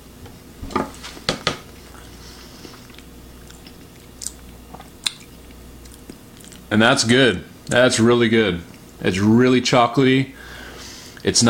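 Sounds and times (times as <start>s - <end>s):
person chewing a chocolatey baked treat: 1.7s - 6.7s
speech: 6.7s - 10.4s, 11.2s - 11.4s.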